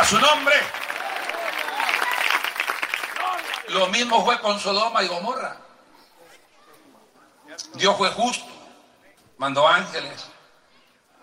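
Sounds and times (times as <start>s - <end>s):
audience applause: 0.0s - 4.0s
speech: 0.1s - 0.8s, 3.7s - 5.6s, 7.6s - 8.6s, 9.4s - 10.4s.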